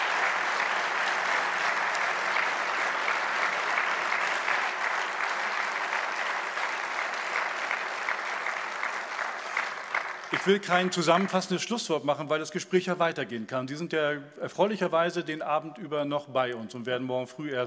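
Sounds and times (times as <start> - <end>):
audience applause: 0.0 - 11.5
speech: 10.4 - 17.6.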